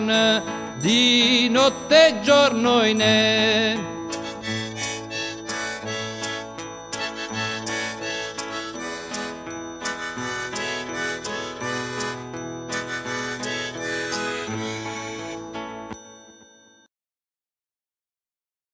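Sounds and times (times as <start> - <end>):
folk song in Peschici dialect: 0.0 - 15.4.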